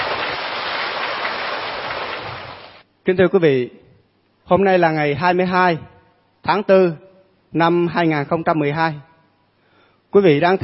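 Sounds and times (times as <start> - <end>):
audience applause: 0.0 - 2.8
speech: 3.1 - 3.8, 4.5 - 9.1, 10.1 - 10.6.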